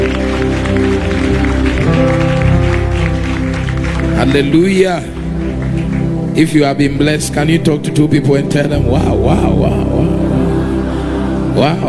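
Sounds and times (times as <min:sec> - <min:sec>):
audience clapping hands: 0:00.0 - 0:07.2
sustained organ or keyboard chords: 0:00.0 - 0:11.8
speech: 0:04.3 - 0:05.3, 0:06.4 - 0:10.4, 0:11.6 - 0:11.8.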